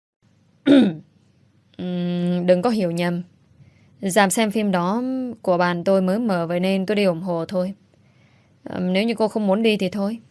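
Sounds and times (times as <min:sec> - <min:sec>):
speech: 0:00.6 - 0:01.0, 0:01.8 - 0:03.3, 0:04.0 - 0:07.8, 0:08.6 - 0:10.2
man coughing: 0:00.7 - 0:01.0.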